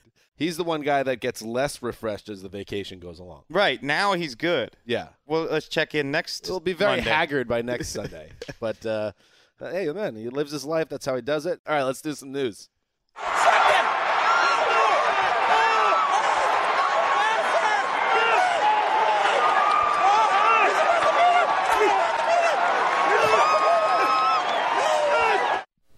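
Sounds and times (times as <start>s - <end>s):
speech: 0.4s - 13.4s
crowd cheering at end of horse race: 13.2s - 25.7s.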